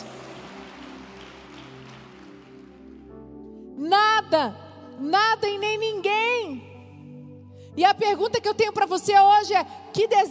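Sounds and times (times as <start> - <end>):
audience applause: 0.0 - 3.0
speech: 3.8 - 6.7, 7.8 - 10.2.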